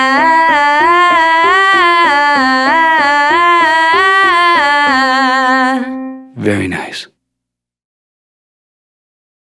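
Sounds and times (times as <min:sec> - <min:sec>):
ladies singing Ah as in hat vocal exercise: 0:00.0 - 0:06.3.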